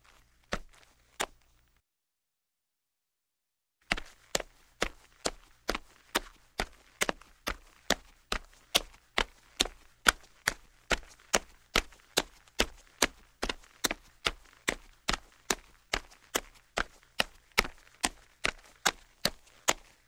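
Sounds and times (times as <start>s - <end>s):
sneaker footsteps on linoleum: 3.8s - 20.0s.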